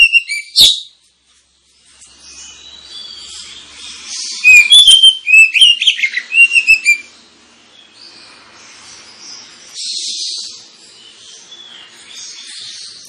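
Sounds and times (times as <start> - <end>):
Oriental magpie-robin singing loudly: 0.0 - 1.0, 2.1 - 13.0.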